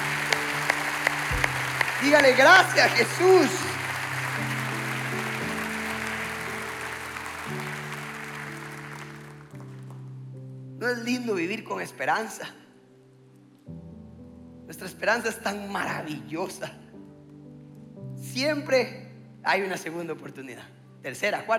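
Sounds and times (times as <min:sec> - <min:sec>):
audience applause: 0:00.0 - 0:10.0
speech: 0:02.0 - 0:03.7, 0:10.9 - 0:12.6, 0:14.7 - 0:16.8, 0:18.4 - 0:21.5.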